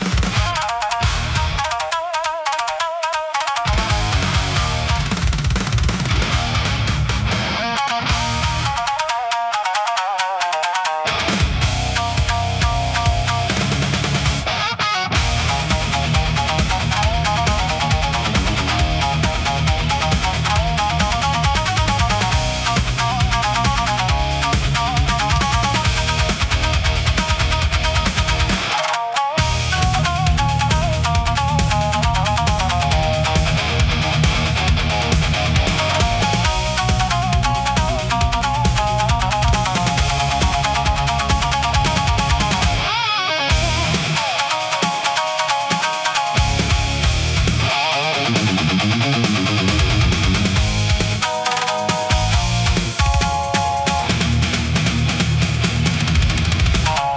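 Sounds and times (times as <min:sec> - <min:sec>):
intense Japanese rock music: 0:00.0 - 0:57.1.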